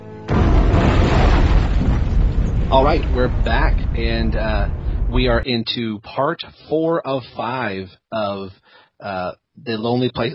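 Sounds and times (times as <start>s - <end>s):
bomb explosion: 0.3s - 5.4s
speech: 2.7s - 10.3s.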